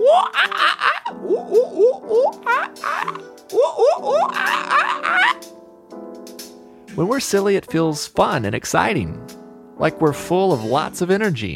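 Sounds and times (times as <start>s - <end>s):
giggling: 0.0s - 5.4s
several voices making playful monkey noises: 0.0s - 5.5s
speech: 7.0s - 11.5s.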